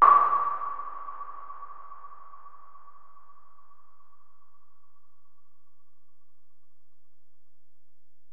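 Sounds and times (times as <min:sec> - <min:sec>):
electronic percussion from an Alesis DM-PRO: 0:00.0 - 0:03.4.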